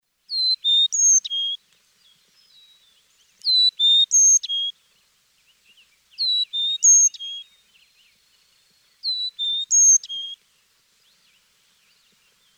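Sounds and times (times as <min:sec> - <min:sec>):
Carolina chickadee chick-a-dee calls: 0:00.3 - 0:01.6, 0:03.4 - 0:04.8, 0:06.2 - 0:07.5, 0:09.0 - 0:10.4.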